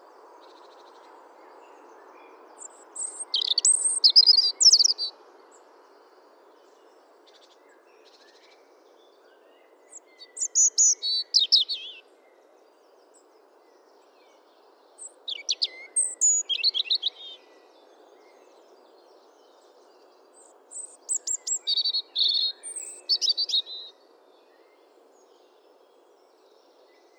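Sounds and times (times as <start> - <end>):
European robin singing: 1.9 - 5.1, 9.9 - 12.0, 15.0 - 17.5, 20.4 - 23.9.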